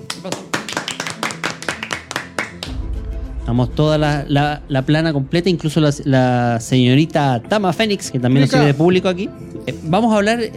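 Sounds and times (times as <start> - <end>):
audience applause: 0.0 - 2.7
speech: 0.2 - 0.5, 3.5 - 10.5.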